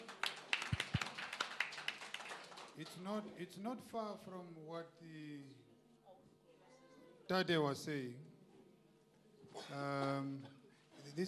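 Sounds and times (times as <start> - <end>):
audience applause: 0.0 - 2.8
speech: 2.8 - 5.7, 7.3 - 8.3, 9.5 - 11.2.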